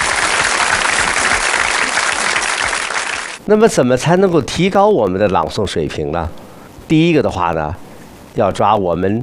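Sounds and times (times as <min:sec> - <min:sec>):
applause: 0:00.0 - 0:03.4
speech: 0:03.5 - 0:07.8, 0:08.4 - 0:09.2.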